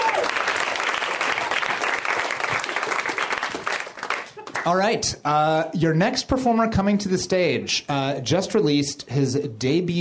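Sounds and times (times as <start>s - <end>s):
audience applause: 0.0s - 4.8s
speech: 4.7s - 9.9s.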